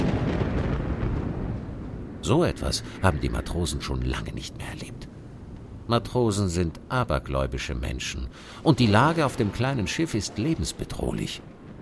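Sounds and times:
thunder during a storm: 0.0 - 5.4, 8.5 - 11.7
speech: 2.2 - 5.2, 5.9 - 11.5.

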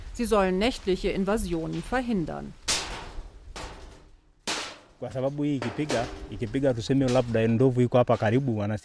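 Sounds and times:
speech: 0.2 - 2.6, 5.0 - 8.8
metal sheets hanging in a tree clanging in wind: 1.6 - 8.0.

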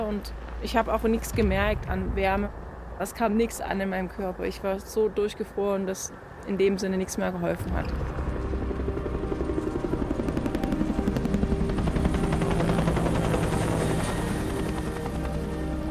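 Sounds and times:
speech: 0.1 - 8.2
helicopter engine roar: 7.6 - 15.9.

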